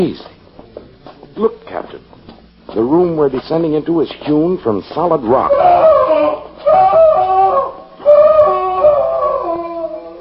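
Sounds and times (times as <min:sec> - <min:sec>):
speech: 0:00.0 - 0:00.4, 0:01.4 - 0:02.1, 0:02.8 - 0:06.1
man screaming in agony: 0:05.4 - 0:10.2.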